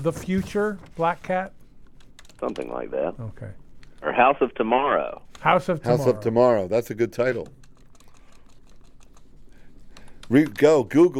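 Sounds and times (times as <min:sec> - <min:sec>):
speech: 0:00.0 - 0:01.6, 0:02.4 - 0:07.6, 0:10.3 - 0:11.1
typing on a computer keyboard: 0:01.9 - 0:02.7, 0:07.4 - 0:10.9.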